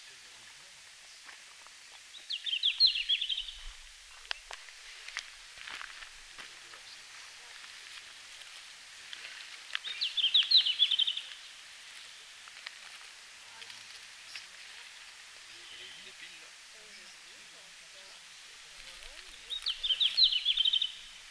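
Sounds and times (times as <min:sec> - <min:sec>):
Red-flanked bluetail singing: 0:02.1 - 0:04.6, 0:09.8 - 0:11.5, 0:15.5 - 0:21.3.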